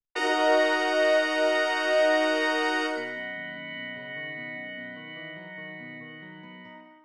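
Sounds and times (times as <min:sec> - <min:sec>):
leitmotif music: 0:00.2 - 0:07.0.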